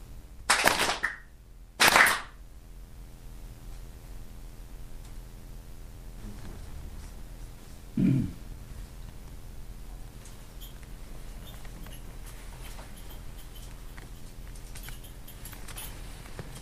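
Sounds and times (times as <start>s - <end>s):
two ritual hand claps at a shrine: 0.5s - 2.4s.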